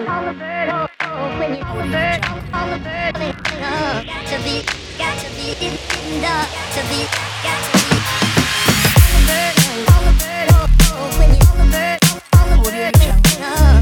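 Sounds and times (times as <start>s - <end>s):
hip hop drum kit: 3.4s - 13.7s.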